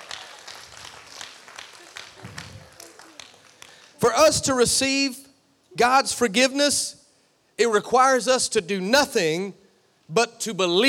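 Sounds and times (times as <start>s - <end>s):
crowd clapping: 0.0s - 4.2s
speech: 4.1s - 5.2s, 5.8s - 7.0s, 7.6s - 10.8s.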